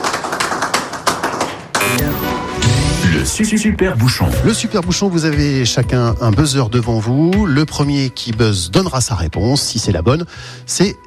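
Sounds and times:
studio audience applause: 0.0s - 2.3s
speech: 3.2s - 11.0s.

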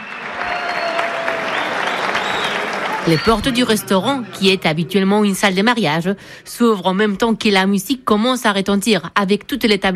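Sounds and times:
loud applause: 0.0s - 4.4s
speech: 3.1s - 9.9s.

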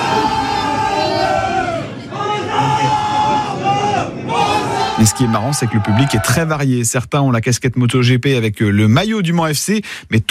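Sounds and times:
football supporters cheering in a packed bar: 0.0s - 6.6s
speech: 5.0s - 10.2s.

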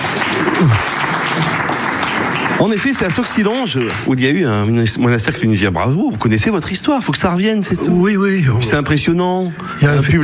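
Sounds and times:
audience applause at a local history quiz in Issoire, France: 0.0s - 4.4s
speech: 0.6s - 1.5s, 2.6s - 10.2s.

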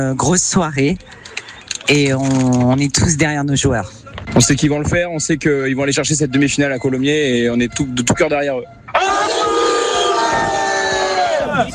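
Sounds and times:
speech: 0.0s - 1.3s, 1.9s - 8.8s
rugby supporters chanting and cheering: 8.9s - 11.7s.

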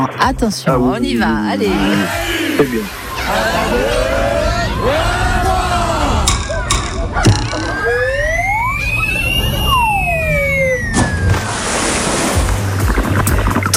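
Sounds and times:
speech: 0.0s - 4.1s
wash of water noise: 0.0s - 13.7s
high rising and falling whistle-like tones: 6.3s - 11.4s
person diving off a diving board into a pool: 10.9s - 13.7s.

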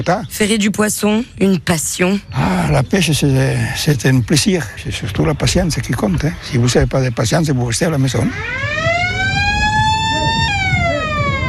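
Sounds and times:
speech: 0.0s - 8.9s
alarm siren marking end of fishing contest: 8.1s - 11.4s.

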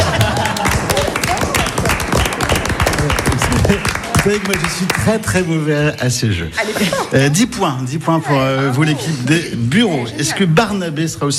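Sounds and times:
laughter: 0.0s - 2.2s, 3.0s - 4.6s, 6.5s - 7.6s
applause: 0.0s - 5.4s
speech: 4.3s - 11.3s.

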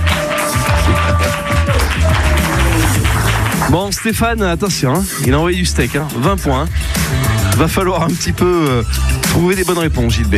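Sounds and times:
audience applause: 0.0s - 3.9s
speech: 3.7s - 10.3s.

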